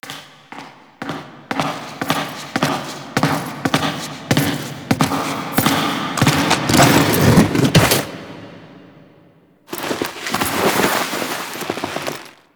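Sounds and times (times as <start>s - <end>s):
footsteps entering: 0.0s - 12.5s
briefcase handling: 4.4s - 8.4s, 9.7s - 12.5s.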